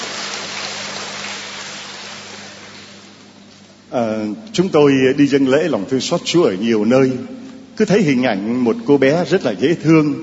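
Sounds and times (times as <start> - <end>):
large crowd clapping: 0.0 - 3.2
speech: 3.9 - 10.2.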